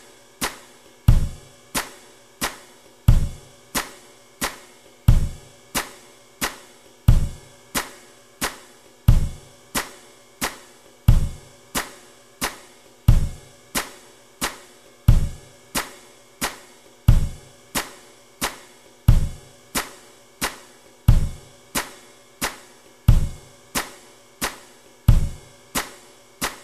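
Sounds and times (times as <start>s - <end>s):
percussion: 0.0s - 26.6s.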